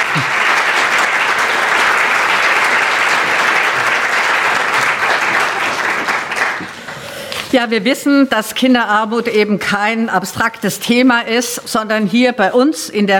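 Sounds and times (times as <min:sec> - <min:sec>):
audience applause: 0:00.0 - 0:07.1
speech: 0:07.6 - 0:13.1.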